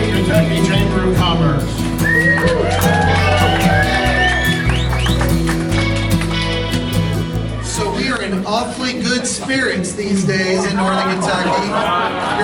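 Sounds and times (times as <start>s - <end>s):
speech: 0.3s - 2.9s, 8.6s - 12.4s
high whistles from the crowd: 2.0s - 5.8s
crowd cheering a speaker at a grand opening on the Purple Maple Bridge: 2.0s - 8.3s
laughter: 2.1s - 12.4s.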